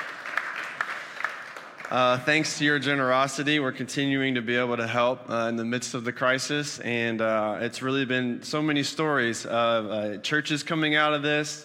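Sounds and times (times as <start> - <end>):
audience clapping: 0.0 - 2.9
speech: 1.9 - 11.6.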